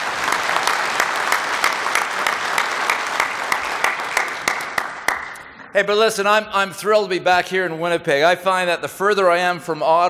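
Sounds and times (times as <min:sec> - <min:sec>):
audience applause: 0:00.0 - 0:05.4
speech: 0:05.8 - 0:10.0.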